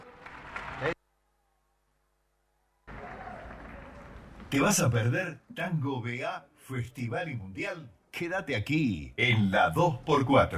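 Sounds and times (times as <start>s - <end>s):
audience applause: 0.0s - 1.0s, 2.9s - 4.4s
speech: 4.5s - 10.5s.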